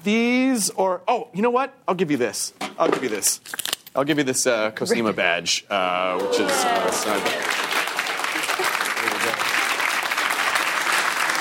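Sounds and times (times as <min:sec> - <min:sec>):
speech: 0:00.0 - 0:07.6
audience applause: 0:06.2 - 0:11.3.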